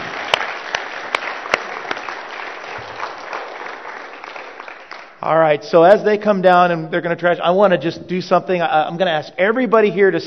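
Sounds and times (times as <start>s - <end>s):
audience applause: 0.0s - 5.2s
speech: 5.2s - 10.2s.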